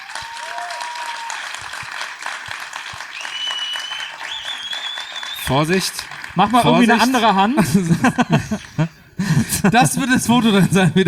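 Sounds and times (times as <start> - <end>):
audience applause: 0.0 - 8.9
faint whistles: 3.2 - 5.6
speech: 5.5 - 11.0
laughter: 6.4 - 11.0.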